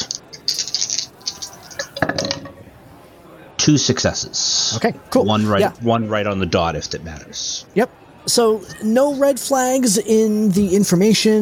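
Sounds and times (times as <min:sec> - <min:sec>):
dice rattling in a cup or hand and clattering onto a hard surface: 0:00.0 - 0:02.4
speech: 0:03.6 - 0:11.3.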